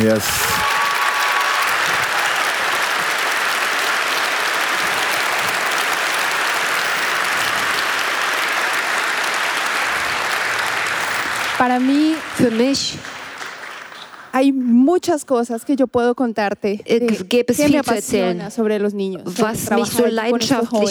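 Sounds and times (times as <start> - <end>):
speech: 0.0 - 0.6, 11.6 - 13.2, 14.4 - 20.8
audience applause: 0.0 - 14.4.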